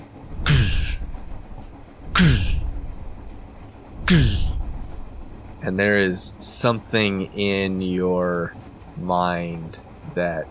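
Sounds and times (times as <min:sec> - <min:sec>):
voice imitating dragon wings flapping: 0:00.3 - 0:01.1, 0:02.1 - 0:02.8, 0:04.0 - 0:04.7
speech: 0:05.7 - 0:10.4.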